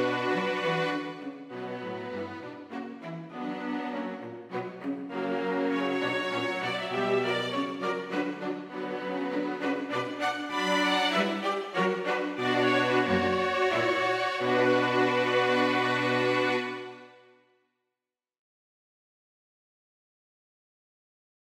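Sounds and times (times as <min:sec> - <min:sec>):
string quartet playing a minuet: 0:00.0 - 0:17.1.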